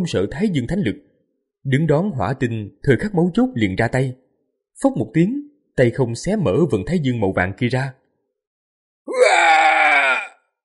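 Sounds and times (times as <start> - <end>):
speech: 0.0 - 4.2, 4.8 - 8.0
agonized scream of a dying creature: 9.1 - 10.4.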